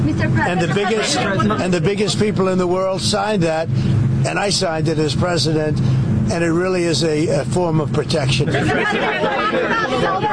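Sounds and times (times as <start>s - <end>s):
speech: 0.1s - 10.3s
laughter: 0.4s - 2.4s, 8.2s - 10.3s
reporters shouting questions over each other: 8.6s - 10.3s.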